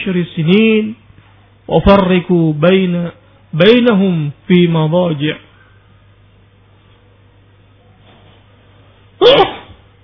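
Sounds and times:
speech: 0.0 - 1.0, 1.7 - 5.5
faint low hum: 0.0 - 10.0
sneeze: 9.2 - 9.9.

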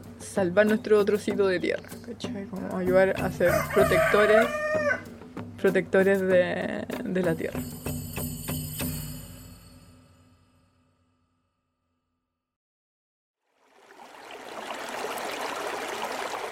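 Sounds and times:
speech: 0.4 - 7.9
river stream flowing: 13.5 - 16.5.

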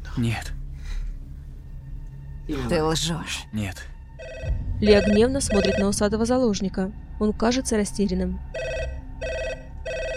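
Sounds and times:
speech: 0.2 - 0.6, 2.5 - 8.6
telephone bell ringing: 4.2 - 5.8, 8.6 - 10.1.

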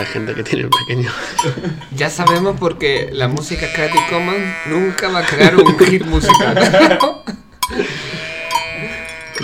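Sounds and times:
sheep bleating: 0.0 - 0.7, 3.4 - 5.8, 7.8 - 9.4
speech: 0.0 - 8.0
laughter: 1.1 - 2.0, 4.9 - 8.9.

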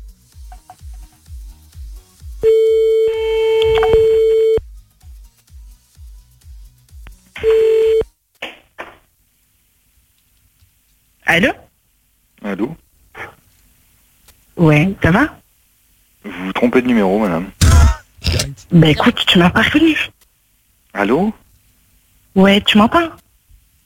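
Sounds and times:
telephone ringback tone: 2.4 - 4.6, 7.4 - 8.0
speech: 11.3 - 11.6, 12.6 - 12.8, 14.6 - 15.4, 16.6 - 17.6, 18.3 - 20.1, 21.0 - 21.4, 22.4 - 23.2.

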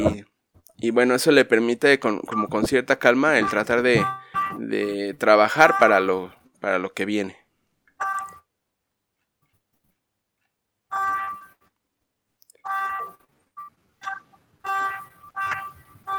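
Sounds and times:
speech: 0.0 - 7.4
beeping or honking: 2.3 - 6.4, 8.0 - 8.4, 10.9 - 11.6, 12.6 - 16.1.

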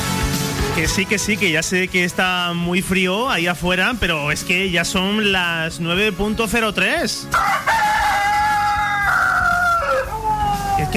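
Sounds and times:
speech: 0.8 - 7.9
rooster crowing: 7.3 - 10.6.

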